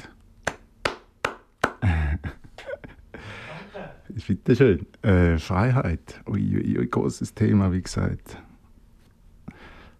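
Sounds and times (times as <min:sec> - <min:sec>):
hand claps: 0:00.4 - 0:01.9
speech: 0:04.2 - 0:08.4.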